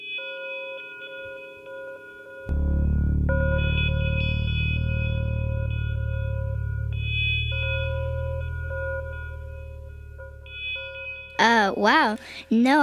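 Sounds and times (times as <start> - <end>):
futuristic alien-sounding alarm: 2.4 - 12.4
speech: 11.7 - 12.8.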